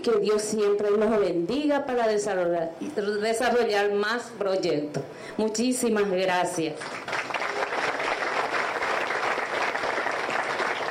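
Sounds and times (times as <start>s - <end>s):
speech: 0.0s - 7.3s
audience applause: 6.9s - 10.9s.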